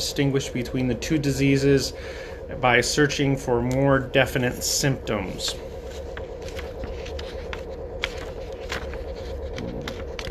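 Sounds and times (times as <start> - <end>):
speech: 0.0 - 5.7
low hum: 0.0 - 10.2
paper book page being turned: 5.8 - 10.2.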